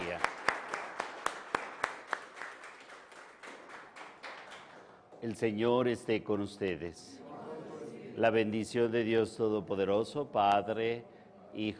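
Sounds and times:
audience applause: 0.0 - 4.9
speech: 5.2 - 7.2, 8.2 - 11.7.

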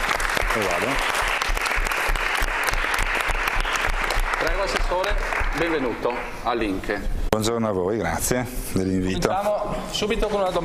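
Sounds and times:
audience applause: 0.0 - 6.2
speech: 0.5 - 1.2, 4.6 - 10.6.

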